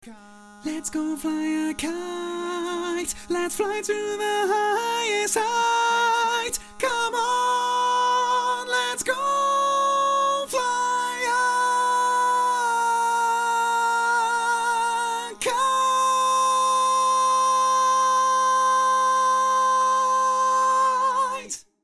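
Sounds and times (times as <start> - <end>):
tenor singing barbershop tags: 0.2 - 21.6.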